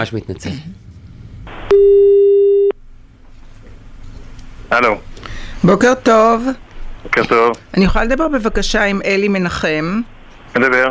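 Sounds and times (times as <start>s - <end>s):
speech: 0.0s - 0.8s, 1.7s - 2.3s, 4.7s - 10.8s
faint noise: 0.0s - 10.8s
telephone ringing tone while a call is placed: 1.7s - 2.8s.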